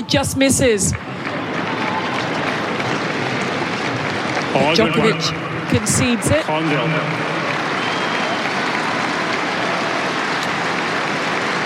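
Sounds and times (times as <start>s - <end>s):
speech: 0.1s - 1.4s, 4.5s - 7.4s
tennis crowd applauding: 1.0s - 11.6s.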